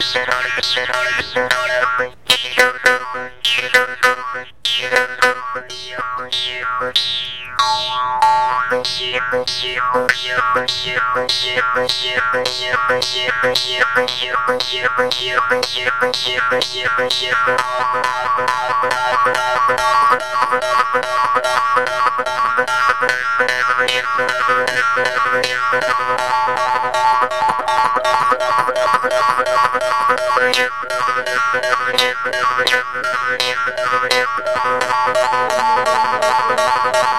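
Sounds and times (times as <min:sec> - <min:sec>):
morchang playing in India: 0:00.0 - 0:37.1.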